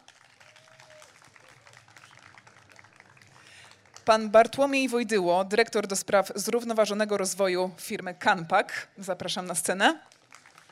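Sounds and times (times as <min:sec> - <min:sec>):
audience applause for a guest: 0:00.0 - 0:04.3, 0:10.0 - 0:10.7
speech: 0:04.1 - 0:10.2.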